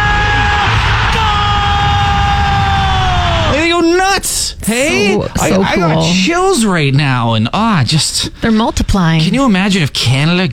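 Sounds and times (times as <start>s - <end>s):
huge stadium crowd roaring: 0.0s - 6.0s
speech: 4.7s - 10.5s.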